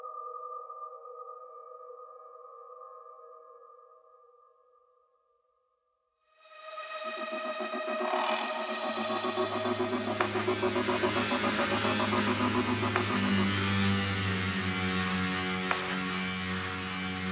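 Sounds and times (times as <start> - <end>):
loading up pads effect: 6.5 - 17.3.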